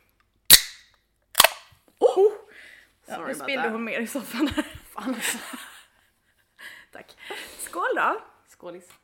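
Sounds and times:
soda can being opened: 1.4s - 1.6s
speech: 3.1s - 5.7s, 6.9s - 9.0s
laughter: 4.2s - 6.1s.

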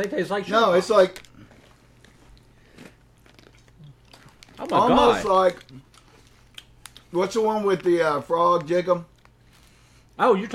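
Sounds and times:
speech: 0.0s - 1.3s, 4.6s - 5.8s, 7.1s - 9.1s, 10.2s - 10.5s
chewing crunchy Sugar Pops sugar-coated breakfast cereal: 1.0s - 10.0s.

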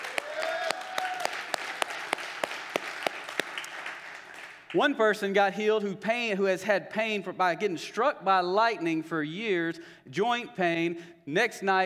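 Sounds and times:
audience clapping in praise: 0.0s - 4.9s
speech: 4.7s - 11.8s.

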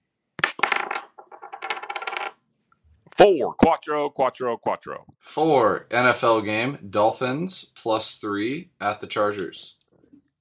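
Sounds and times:
dice being rolled: 0.4s - 2.4s
speech: 3.2s - 9.8s.

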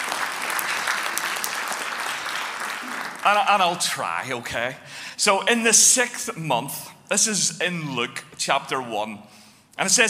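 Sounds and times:
audience applause: 0.0s - 3.4s
speech: 3.2s - 10.0s.

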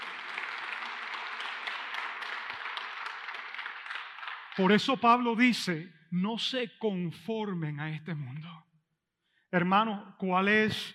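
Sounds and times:
audience applause: 0.0s - 4.9s
speech: 4.6s - 8.6s, 9.5s - 10.9s.

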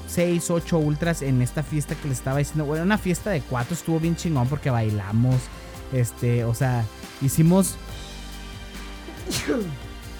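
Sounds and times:
speech: 0.1s - 8.0s, 9.3s - 9.8s
small sneeze: 9.1s - 9.8s.

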